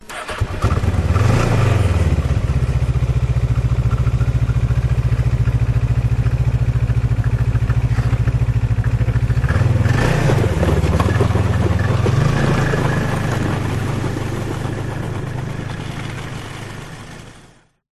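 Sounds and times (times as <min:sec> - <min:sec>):
Ski-doo snowmobile engine starting, howling and driving away: 0:00.1 - 0:17.8.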